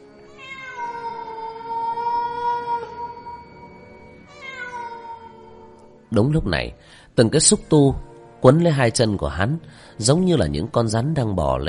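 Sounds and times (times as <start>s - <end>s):
eerie cat-like wail resembling infant crying: 0.2s - 5.9s
speech: 6.1s - 11.6s.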